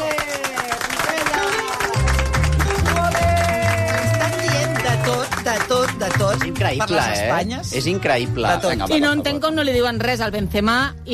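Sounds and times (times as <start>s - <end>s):
audience applause: 0.0s - 6.9s
music with deep bass notes: 0.0s - 11.1s
speech: 6.7s - 11.1s.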